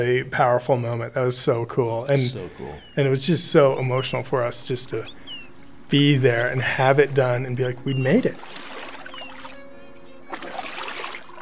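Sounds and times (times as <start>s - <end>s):
speech: 0.0s - 5.2s, 5.9s - 8.7s
boat paddles splashing in sea water: 7.9s - 11.3s.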